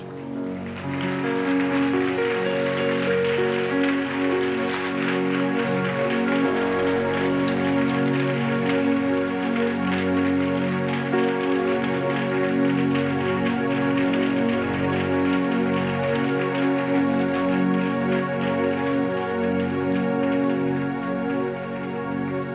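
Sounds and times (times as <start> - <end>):
applause: 0.0 - 22.5.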